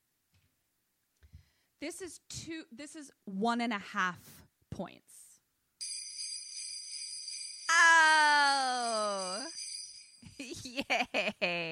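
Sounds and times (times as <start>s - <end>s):
speech: 1.8s - 5.3s
sleigh bells jingling: 5.8s - 11.2s.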